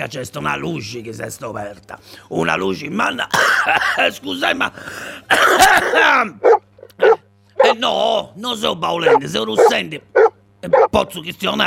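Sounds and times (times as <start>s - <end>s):
speech: 0.0s - 7.0s, 7.7s - 11.6s
man clearing throat: 3.3s - 4.2s, 5.3s - 6.4s
man coughing: 3.3s - 6.4s.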